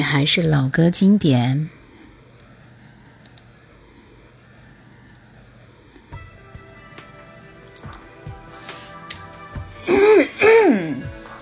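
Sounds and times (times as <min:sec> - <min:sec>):
speech: 0:00.0 - 0:01.8
person coughing: 0:09.9 - 0:11.1.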